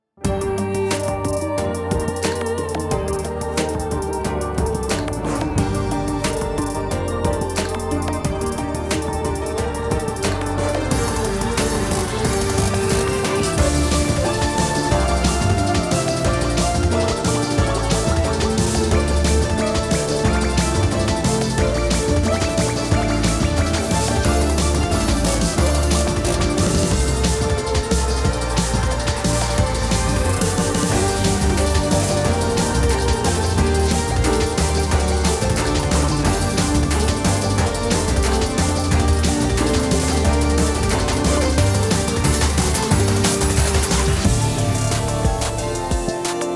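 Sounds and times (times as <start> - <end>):
fugue remix: 0.2 - 46.5.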